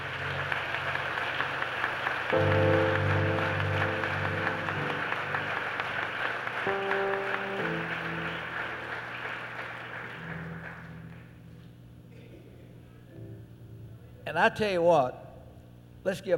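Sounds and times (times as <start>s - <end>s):
crowd clapping: 0.0s - 11.7s
organ or keyboard chords: 0.0s - 16.3s
speech: 2.3s - 2.8s, 14.4s - 15.2s, 16.0s - 16.3s.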